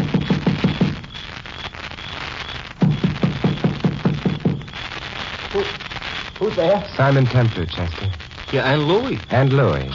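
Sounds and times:
steady hiss: 0.0 - 9.9
knocking on a door: 2.8 - 4.7
speech: 6.4 - 9.9.

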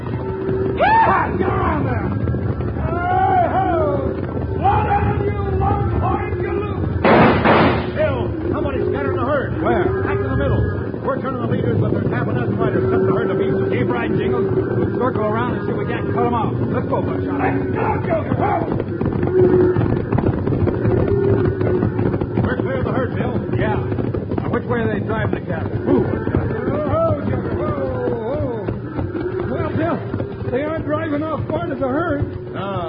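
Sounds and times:
cattle stampede: 0.0 - 32.8
volley of gunshots: 7.0 - 8.1.

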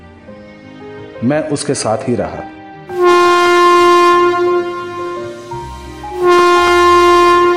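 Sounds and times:
speech: 1.2 - 3.1
train horn as train departs station: 2.9 - 7.5.

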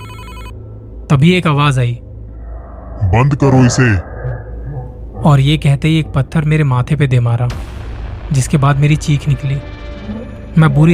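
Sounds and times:
mobile phone ringing: 0.0 - 0.6
speech: 1.1 - 2.0, 3.1 - 4.1, 5.2 - 10.9.

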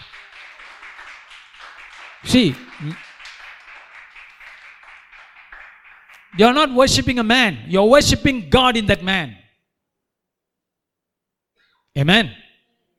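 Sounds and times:
audience clapping hands: 0.0 - 7.2
speech: 2.2 - 3.1, 6.4 - 9.4, 12.0 - 12.4.

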